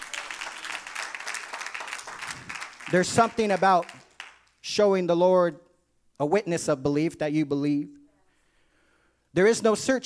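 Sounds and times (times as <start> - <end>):
church congregation clapping hands in praise: 0.0 - 4.6
speech: 2.9 - 4.0, 4.6 - 5.6, 6.2 - 8.0, 9.3 - 10.0.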